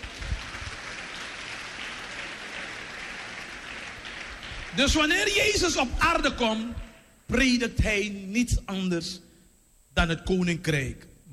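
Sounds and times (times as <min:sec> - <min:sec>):
audience applause: 0:00.0 - 0:05.5
speech: 0:04.7 - 0:09.2, 0:10.0 - 0:11.3.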